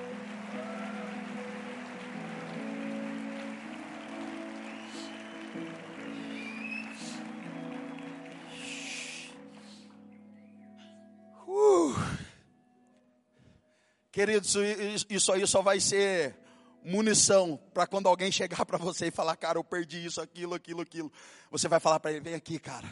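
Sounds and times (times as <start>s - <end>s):
audience applauding: 0.0s - 9.9s
speech: 14.2s - 22.9s.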